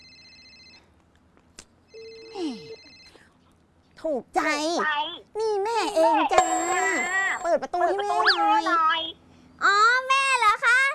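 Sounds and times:
phone ringing with bright electronic ringtone: 0.0s - 0.9s, 1.9s - 3.2s
speech: 4.0s - 9.9s.

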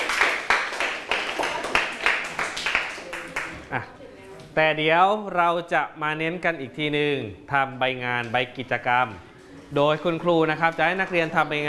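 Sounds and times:
hand clapping: 0.0s - 3.6s
speech: 3.7s - 3.9s, 4.6s - 11.6s.

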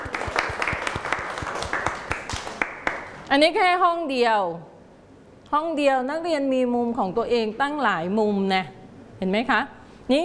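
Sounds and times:
group of children clapping their hands: 0.0s - 3.2s
speech: 3.3s - 4.7s, 5.5s - 10.2s.

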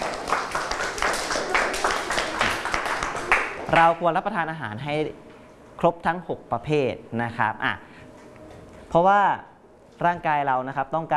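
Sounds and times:
classroom applause: 0.0s - 4.0s
speech: 3.7s - 8.0s, 8.9s - 11.1s.

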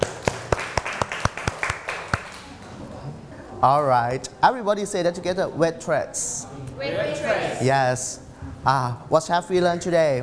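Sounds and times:
classroom clapping: 0.0s - 2.7s
speech: 3.6s - 10.2s.

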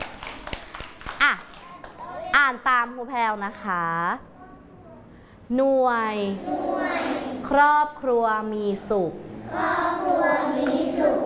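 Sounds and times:
children clapping hands: 0.0s - 2.2s
speech: 2.5s - 4.3s, 5.5s - 6.8s, 7.5s - 11.2s.

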